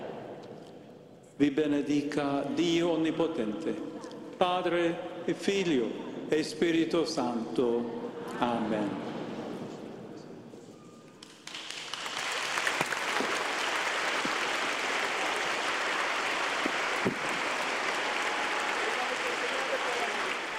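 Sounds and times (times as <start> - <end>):
speech: 1.4 - 9.1
applause after a blessing: 11.2 - 20.5.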